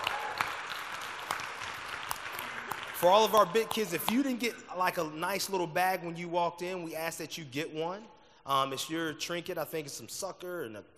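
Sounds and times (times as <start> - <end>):
light applause from a church congregation welcoming the children: 0.0 - 4.0
speech: 3.0 - 10.9.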